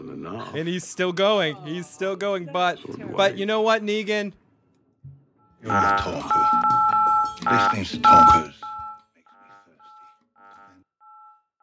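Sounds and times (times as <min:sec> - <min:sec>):
speech: 0:00.3 - 0:04.4, 0:05.6 - 0:06.7, 0:07.4 - 0:08.7
computer beeping: 0:05.5 - 0:09.0.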